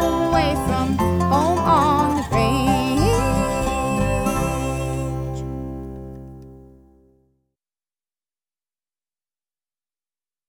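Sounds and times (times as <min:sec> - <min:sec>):
string music: 0:00.0 - 0:07.1.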